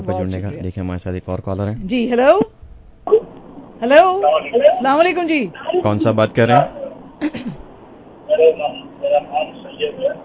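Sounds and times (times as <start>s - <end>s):
speech: 0.0s - 2.6s, 3.8s - 7.6s, 8.4s - 10.2s
caller's radio playing in the background of a telephone call: 4.1s - 7.0s, 8.3s - 10.2s.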